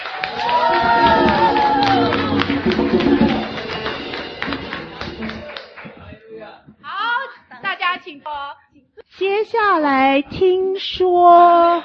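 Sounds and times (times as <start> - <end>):
audience applause: 0.0 - 6.1
voices calling out and cheering: 0.2 - 3.8
speech: 9.4 - 11.8.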